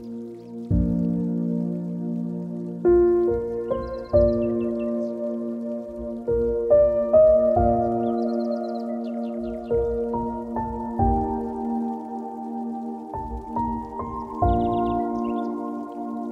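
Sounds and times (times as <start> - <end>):
spa music: 0.0 - 16.2
birds: 3.3 - 12.1, 13.2 - 16.2.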